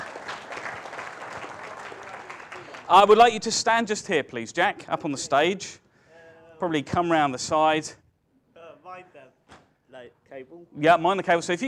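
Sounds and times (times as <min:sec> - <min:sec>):
audience applause from a small crowd as a volunteer is invited on stage: 0:00.0 - 0:03.4
speech: 0:02.9 - 0:05.8, 0:06.6 - 0:08.0, 0:10.4 - 0:11.6.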